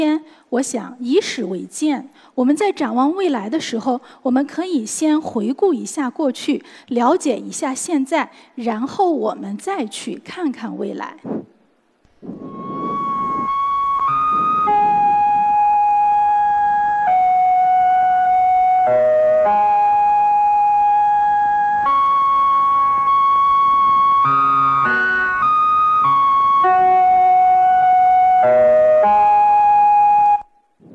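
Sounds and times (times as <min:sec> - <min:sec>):
speech: 0:00.0 - 0:11.5, 0:12.2 - 0:12.8
melody broadcast from space: 0:12.4 - 0:30.5.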